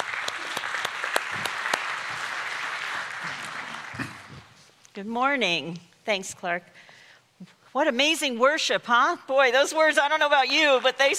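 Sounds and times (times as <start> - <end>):
church congregation applauding during a service: 0.0 - 4.6
speech: 5.0 - 11.1.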